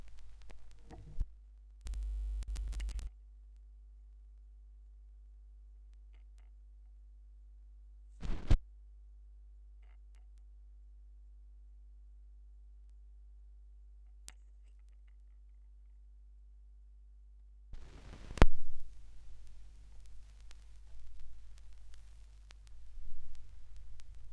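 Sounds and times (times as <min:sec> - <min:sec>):
vinyl record noise: 0:00.0 - 0:03.1, 0:08.2 - 0:08.6, 0:17.8 - 0:24.3.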